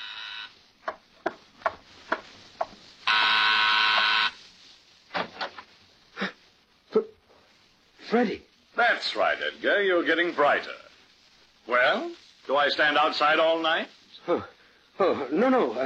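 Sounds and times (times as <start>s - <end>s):
doorbell buzzer: 0.0s - 0.6s, 3.1s - 4.4s
taps and knocks: 0.8s - 2.8s
speech: 8.1s - 10.8s, 11.7s - 15.8s.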